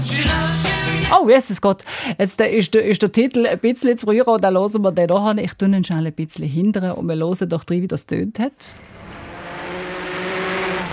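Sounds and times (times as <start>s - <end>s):
speech: 1.1s - 9.2s
race cars roaring up a road: 8.8s - 10.9s.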